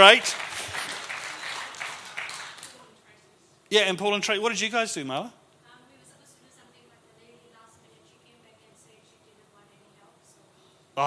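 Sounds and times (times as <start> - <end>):
speech: 0.0 - 0.5, 3.7 - 5.4
audience applause: 0.0 - 2.9.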